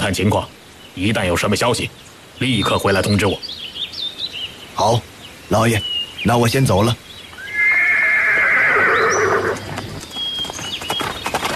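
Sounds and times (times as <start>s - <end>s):
speech: 0.0s - 3.7s, 4.8s - 7.0s
horse whinnying: 7.4s - 10.0s
light hoof clops: 9.2s - 11.5s.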